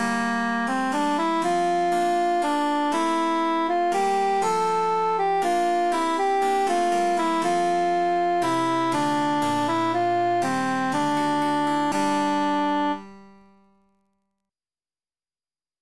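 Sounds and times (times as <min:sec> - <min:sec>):
emphasized altus voice singing: 0:00.9 - 0:13.1.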